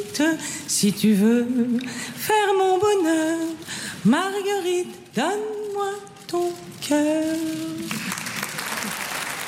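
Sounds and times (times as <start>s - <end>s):
speech: 0.2s - 8.1s
audience applause: 8.0s - 9.4s.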